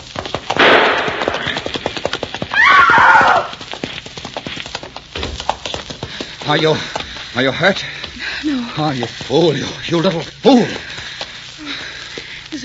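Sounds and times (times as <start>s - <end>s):
galloping horse hooves: 0.0s - 12.6s
gunshot: 0.6s - 1.8s
speech: 6.5s - 10.9s.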